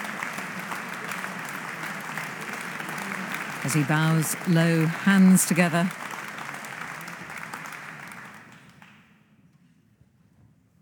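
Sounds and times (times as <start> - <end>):
applause from concert-hall audience and orchestra: 0.0 - 9.1
speech: 3.6 - 6.0.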